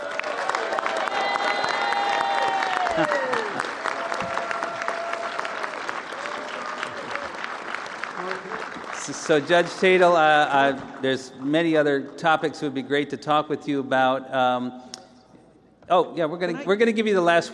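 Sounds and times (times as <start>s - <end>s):
audience applause: 0.0s - 11.7s
speech: 3.0s - 3.2s, 9.3s - 14.9s, 15.9s - 17.5s.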